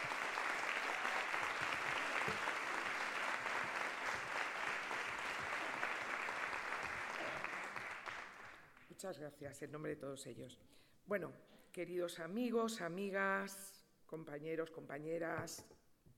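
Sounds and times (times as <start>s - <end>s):
audience applause: 0.0s - 8.6s
speech: 9.0s - 15.8s.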